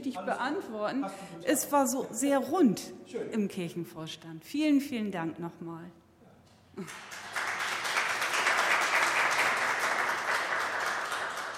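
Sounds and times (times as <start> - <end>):
speech: 0.0 - 6.0, 6.8 - 7.3
audience applause: 6.8 - 11.5.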